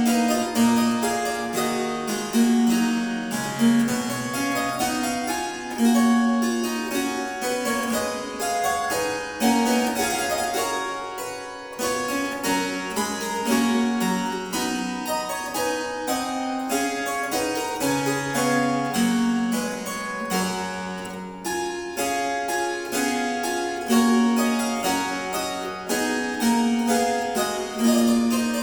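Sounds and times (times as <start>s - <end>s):
quodlibet played on harpsichord: 0.0s - 28.6s.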